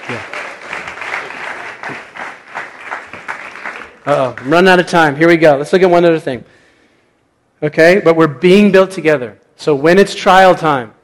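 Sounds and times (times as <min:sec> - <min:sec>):
audience applause: 0:00.0 - 0:04.7
speech: 0:00.1 - 0:00.4, 0:04.0 - 0:06.6, 0:07.6 - 0:11.0.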